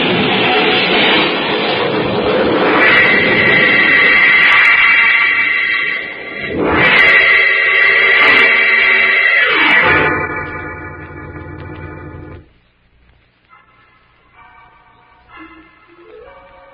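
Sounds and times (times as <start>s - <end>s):
car engine roaring: 0.0s - 12.5s
car tires screeching in a skid: 2.1s - 12.4s.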